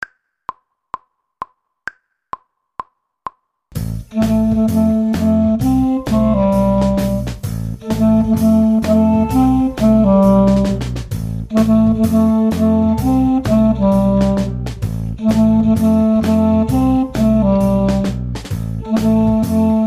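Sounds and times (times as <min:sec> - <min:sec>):
clarinet: 0:04.1 - 0:19.8.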